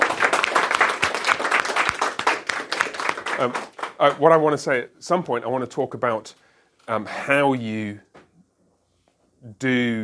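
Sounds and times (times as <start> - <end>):
audience applause: 0.0 - 4.4
speech: 3.4 - 8.1, 9.4 - 10.0.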